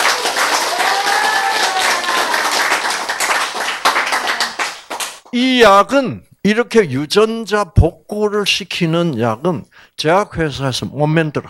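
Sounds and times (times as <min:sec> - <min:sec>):
audience applause: 0:00.0 - 0:05.3
speech: 0:05.4 - 0:11.4.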